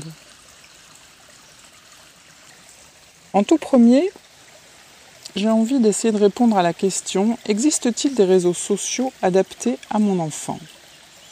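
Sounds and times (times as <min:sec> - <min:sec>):
flowing water at the water's edge: 0:00.0 - 0:11.2
speech: 0:03.3 - 0:04.2, 0:05.3 - 0:10.8.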